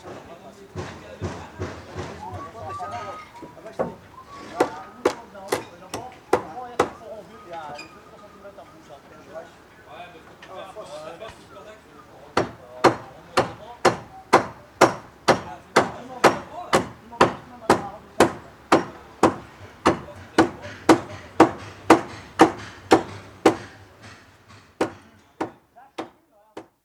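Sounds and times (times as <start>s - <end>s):
hammer adjusting on a construction site: 0.0s - 2.8s, 3.8s - 7.0s, 12.4s - 26.8s
whistling on a construction site: 2.2s - 5.0s.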